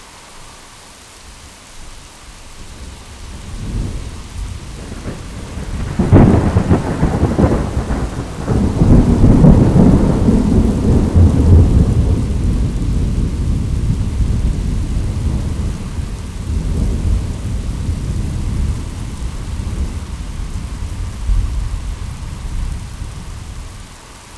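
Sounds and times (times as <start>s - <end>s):
thunder in a thunderstorm: 3.4s - 23.8s.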